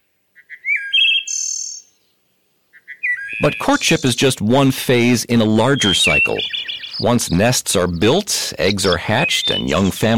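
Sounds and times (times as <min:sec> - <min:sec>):
wood thrush singing: 0:03.3 - 0:10.1
speech: 0:03.4 - 0:10.1.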